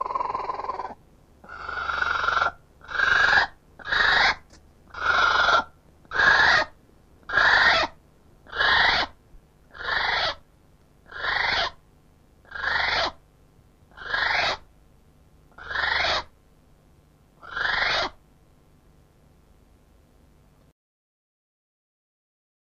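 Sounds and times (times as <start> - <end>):
female North Island brown kiwi: 0.0 - 10.4, 11.1 - 11.8, 12.5 - 13.2, 13.9 - 14.7, 15.5 - 16.3, 17.4 - 18.2.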